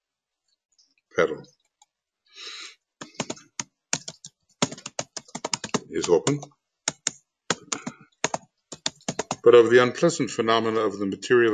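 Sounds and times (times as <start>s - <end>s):
speech: 1.2s - 1.6s, 6.0s - 6.6s, 9.5s - 11.5s
typing on a computer keyboard: 3.0s - 9.5s.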